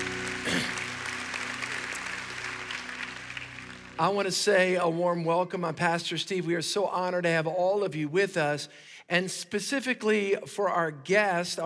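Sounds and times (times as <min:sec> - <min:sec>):
church congregation at an Easter service applauding: 0:00.0 - 0:04.9
low musical tone: 0:00.0 - 0:05.3
speech: 0:04.0 - 0:11.6.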